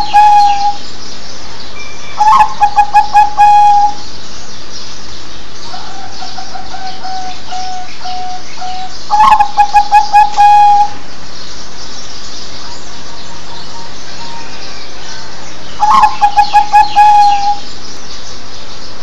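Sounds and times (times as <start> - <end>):
zebra dove cooing: 0.0 - 0.8, 2.2 - 4.0, 5.7 - 11.0, 15.8 - 17.7.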